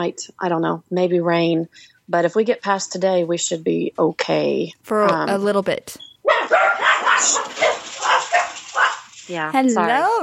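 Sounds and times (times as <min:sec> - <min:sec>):
speech: 0:00.0 - 0:06.6, 0:07.2 - 0:07.7, 0:09.3 - 0:10.2
dogs barking over a phone line: 0:06.2 - 0:09.2.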